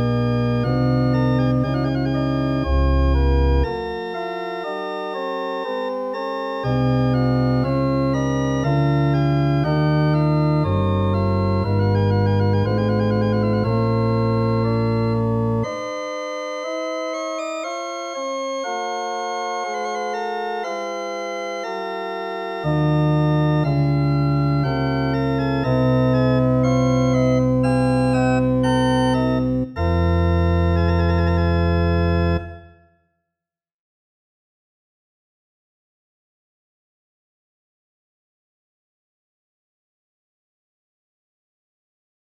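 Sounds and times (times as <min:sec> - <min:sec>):
organ chorale in Werckmeister III tuning: 0:00.0 - 0:32.8.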